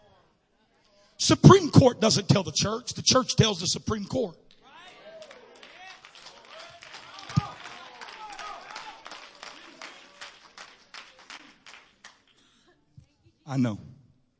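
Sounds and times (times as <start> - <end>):
speech: 1.2 - 4.4, 13.5 - 13.9
scattered audience clapping: 4.5 - 12.6.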